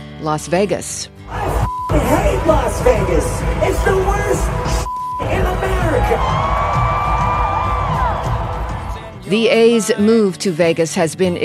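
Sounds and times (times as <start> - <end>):
speech: 0.2 - 6.6, 9.3 - 11.4
Bay Area crowd cheering at a punk rock concert: 1.3 - 9.2.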